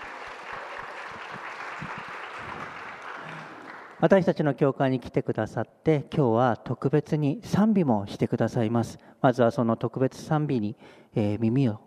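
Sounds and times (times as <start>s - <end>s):
church congregation in Japan applauding to welcome guests from a Korean church: 0.0s - 4.2s
speech: 4.0s - 11.8s.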